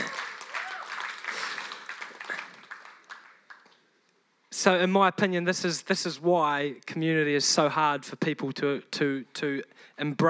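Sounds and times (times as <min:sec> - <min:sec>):
audience applause: 0:00.0 - 0:03.8
speech: 0:04.6 - 0:10.2.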